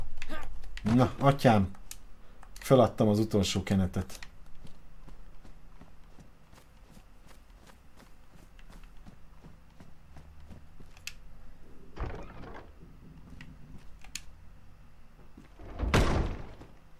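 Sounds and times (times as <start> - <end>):
speech: 0.9 - 1.8, 2.7 - 4.2
door slamming shut: 12.0 - 12.7, 15.6 - 16.7.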